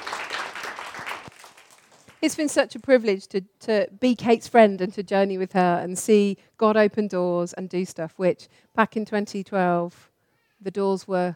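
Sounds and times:
audience applause: 0:00.0 - 0:02.2
speech: 0:02.2 - 0:11.3.

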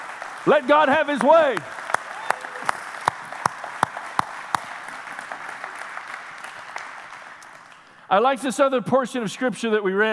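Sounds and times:
audience applause: 0:00.0 - 0:08.0
speech: 0:00.4 - 0:01.8, 0:08.1 - 0:10.1.

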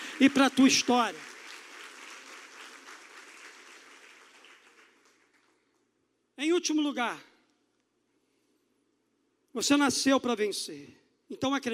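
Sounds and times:
crowd applauding: 0:00.0 - 0:05.8
speech: 0:00.2 - 0:01.3, 0:06.6 - 0:07.3, 0:09.6 - 0:11.7.

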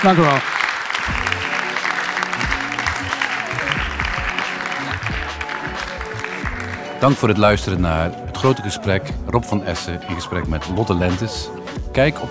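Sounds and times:
speech: 0:00.0 - 0:01.2, 0:07.0 - 0:12.2
audience applause: 0:00.0 - 0:07.2.

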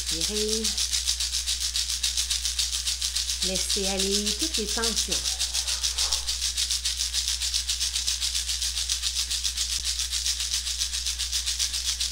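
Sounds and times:
shamanic rattle shaking: 0:00.0 - 0:12.0
speech: 0:00.1 - 0:00.9, 0:03.4 - 0:05.4
faint low hum: 0:03.4 - 0:06.6.

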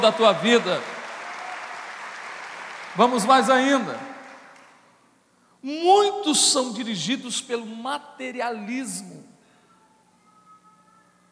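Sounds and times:
speech: 0:00.0 - 0:00.9, 0:03.0 - 0:04.1, 0:05.6 - 0:09.3
audience applauding loudly: 0:00.0 - 0:04.8.

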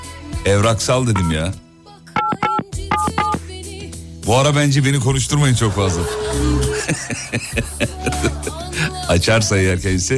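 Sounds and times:
speech: 0:00.4 - 0:01.6, 0:04.3 - 0:10.1
touch-tone dialing on a telephone placing a call: 0:01.2 - 0:01.4, 0:02.2 - 0:03.4
laughter: 0:06.5 - 0:09.0.

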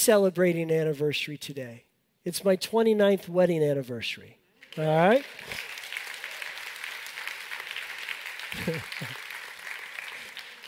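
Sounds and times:
speech: 0:00.0 - 0:05.7, 0:08.6 - 0:09.2
audience applause: 0:04.7 - 0:10.6.

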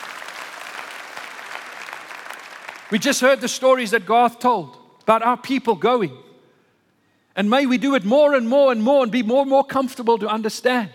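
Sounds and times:
audience applause: 0:00.0 - 0:03.0
speech: 0:02.9 - 0:06.2, 0:07.4 - 0:10.9.

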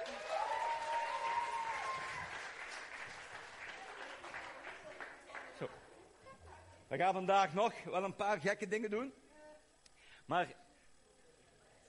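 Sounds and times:
audience applause: 0:00.0 - 0:05.8
speech: 0:05.6 - 0:05.8, 0:06.9 - 0:09.2, 0:10.3 - 0:10.6.

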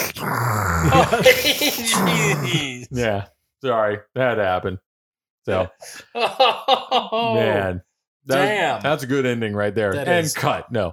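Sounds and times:
voice imitating Darth Vader's mechanical breathing: 0:00.0 - 0:03.0
speech: 0:00.0 - 0:04.8, 0:05.4 - 0:10.9
laughter: 0:00.8 - 0:03.1, 0:06.1 - 0:07.4.

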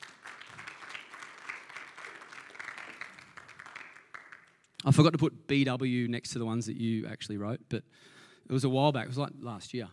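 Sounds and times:
audience clapping: 0:00.0 - 0:05.0
speech: 0:04.8 - 0:09.9.

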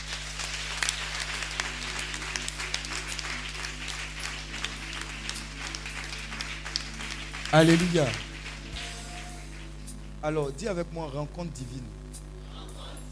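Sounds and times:
congregation applause in a French-language church service acclaiming the Lord: 0:00.0 - 0:09.9
constant low drone: 0:00.0 - 0:13.1
speech: 0:07.5 - 0:08.3, 0:10.2 - 0:12.0.

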